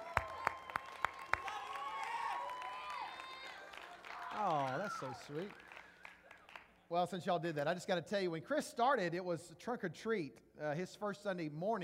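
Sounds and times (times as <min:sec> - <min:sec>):
audience applauding: 0:00.0 - 0:06.8
speech: 0:04.4 - 0:05.7, 0:06.9 - 0:11.8.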